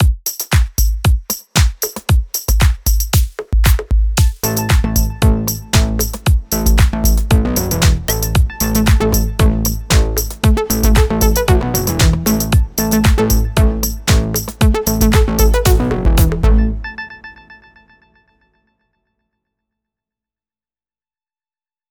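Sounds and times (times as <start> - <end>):
morning music beat: 0.0 - 17.0.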